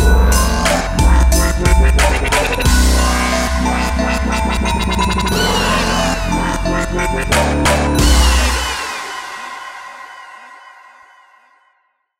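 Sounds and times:
drum pad machine beat: 0.0s - 8.9s.

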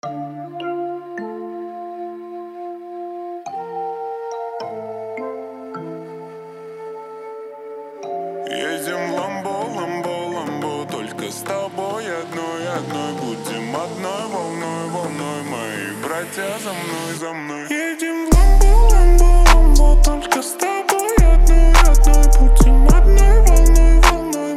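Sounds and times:
37-39-41 Hz low bass tone: 18.3s - 20.2s, 21.2s - 24.2s.

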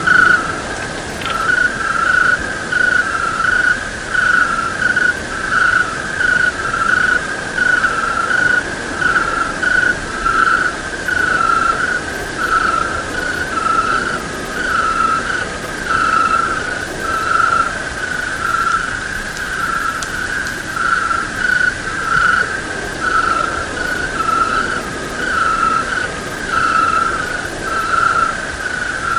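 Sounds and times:
cricket chirping: 0.0s - 29.1s.

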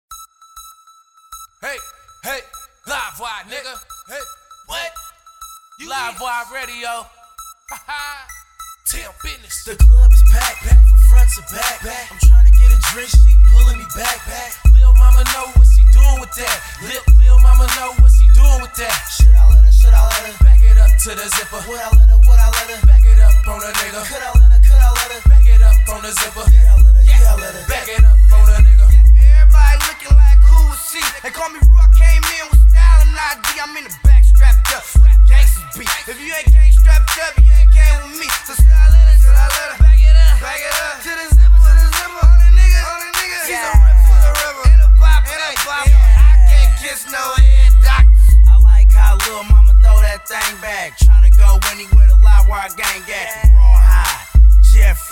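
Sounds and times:
rap with boosted bass: 1.5s - 55.0s.

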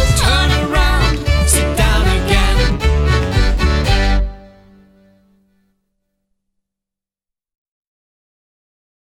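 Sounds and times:
drum: 0.0s - 4.2s.

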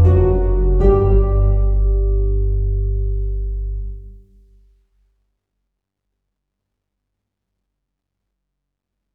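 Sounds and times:
harp: 0.0s - 4.1s.

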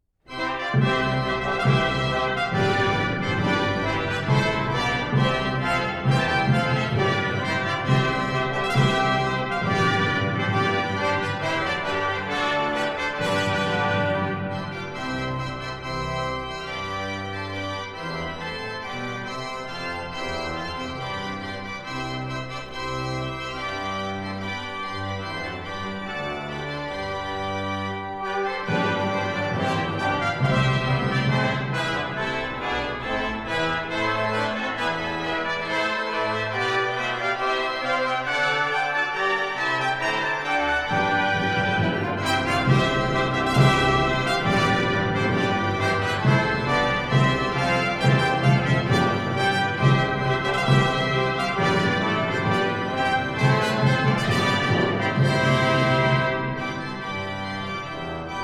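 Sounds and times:
orchestral fanfare march: 0.3s - 58.4s.

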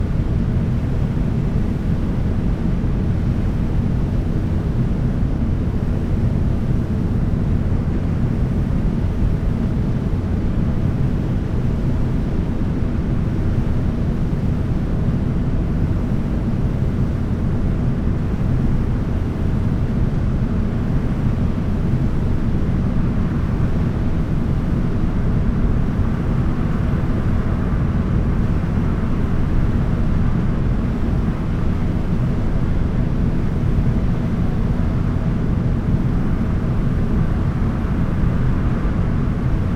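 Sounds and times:
brown noise: 0.0s - 39.7s.

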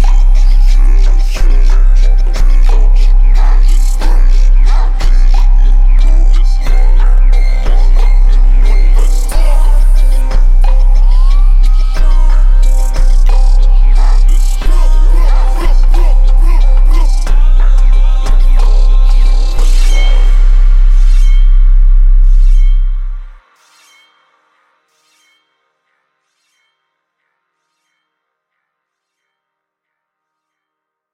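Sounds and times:
bass: 0.0s - 23.5s.

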